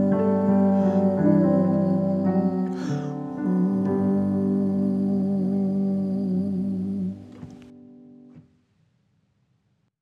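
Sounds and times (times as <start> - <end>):
psalm singing: 0.0 - 7.7.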